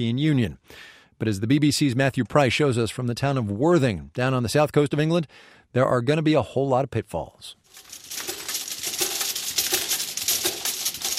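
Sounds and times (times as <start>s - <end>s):
speech: 0.0s - 8.2s
small glass vials clinking through a labelling machine: 7.7s - 11.1s.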